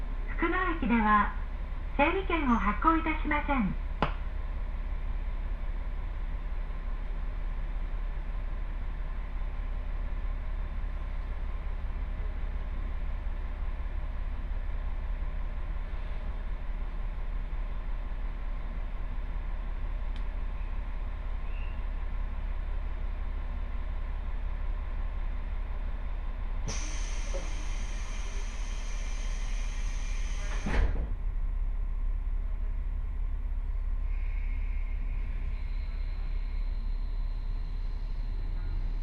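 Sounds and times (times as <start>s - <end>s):
two-car diesel railcar engine and wheels rumbling: 0.0s - 39.0s.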